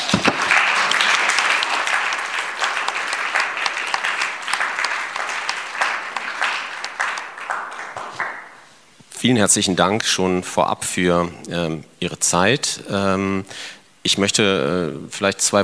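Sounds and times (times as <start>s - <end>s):
audience applause: 0.0s - 8.6s
speech: 9.2s - 15.6s.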